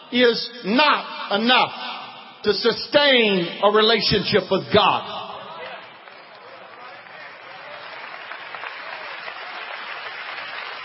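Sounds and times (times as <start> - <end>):
speech: 0.1 - 5.2
audience clapping hands: 5.5 - 10.8.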